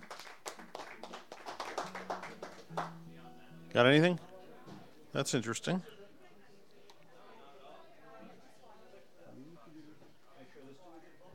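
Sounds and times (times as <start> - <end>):
small audience clapping welcoming an open mic performer: 0.0 - 3.0
speech: 3.7 - 4.3, 5.2 - 5.9.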